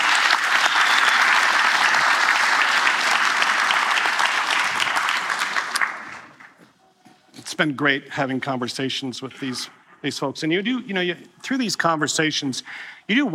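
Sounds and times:
audience applause: 0:00.0 - 0:06.6
speech: 0:07.6 - 0:13.3.

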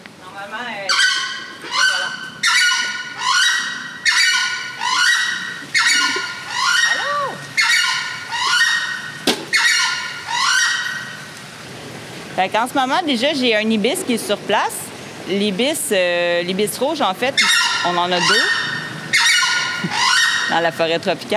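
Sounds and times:
southern screamer calling: 0:00.9 - 0:11.3, 0:17.3 - 0:21.0
speech: 0:12.4 - 0:18.6, 0:19.8 - 0:21.3.

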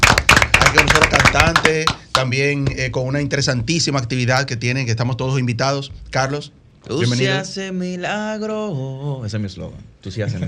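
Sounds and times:
studio audience applause: 0:00.0 - 0:02.0
speech: 0:00.7 - 0:10.4.

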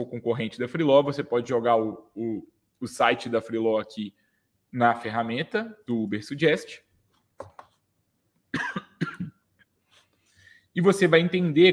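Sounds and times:
speech: 0:00.0 - 0:06.8, 0:10.8 - 0:11.7
person coughing after choking: 0:08.5 - 0:09.4.

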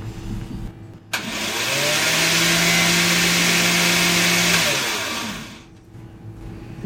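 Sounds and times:
blender mixing egg yolks and garlic: 0:01.2 - 0:05.7.

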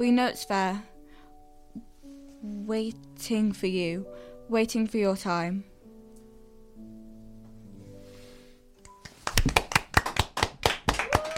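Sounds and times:
speech: 0:00.0 - 0:00.9, 0:02.4 - 0:05.7
polite clapping in studio: 0:08.8 - 0:11.3.

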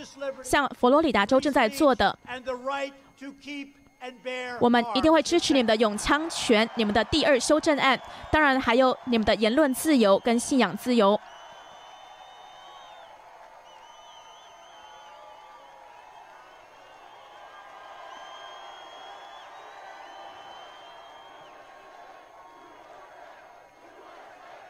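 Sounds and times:
speech: 0:00.0 - 0:11.3
crowd chanting USA: 0:04.8 - 0:11.4, 0:17.7 - 0:24.6.

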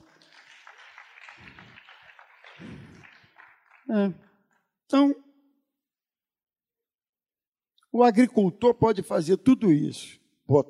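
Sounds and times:
applause: 0:00.0 - 0:04.7
speech: 0:03.9 - 0:04.2, 0:04.9 - 0:05.2, 0:08.0 - 0:10.6.

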